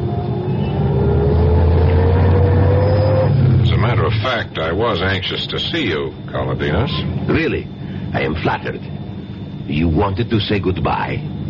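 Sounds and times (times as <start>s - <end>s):
Rolls-Royce car engine accelerating into Paris traffic: 0.0s - 4.4s
speech: 4.9s - 9.0s, 9.7s - 11.3s.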